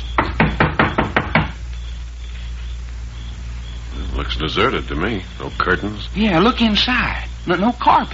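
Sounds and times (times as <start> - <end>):
knocking on a door: 0.2 - 1.6
speech: 4.4 - 8.1.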